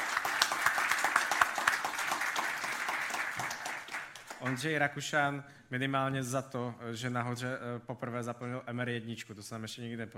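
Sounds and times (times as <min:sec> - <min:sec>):
audience applause: 0:00.0 - 0:04.7
speech: 0:04.4 - 0:10.1.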